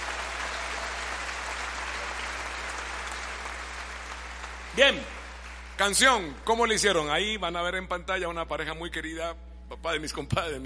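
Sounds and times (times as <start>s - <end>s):
audience applause: 0.0s - 6.2s
speech: 4.8s - 5.2s, 5.8s - 10.6s.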